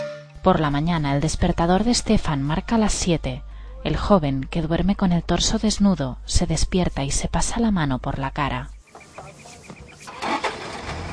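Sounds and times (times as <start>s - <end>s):
speech: 0.4s - 8.8s
engine roaring: 10.0s - 11.1s.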